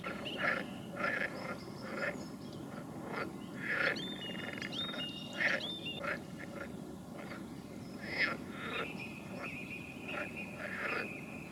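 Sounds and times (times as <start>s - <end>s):
frog chorus of rasping calls: 0.0s - 11.5s.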